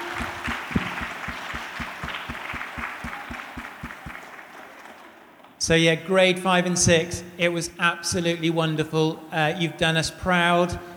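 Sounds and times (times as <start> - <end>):
audience applause: 0.0 - 5.0
speech: 5.7 - 10.9.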